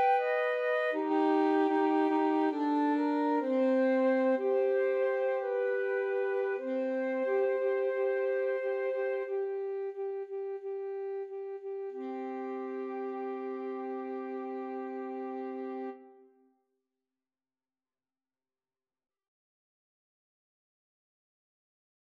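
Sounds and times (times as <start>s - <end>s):
flute and saxophone duet: 0.0s - 16.2s.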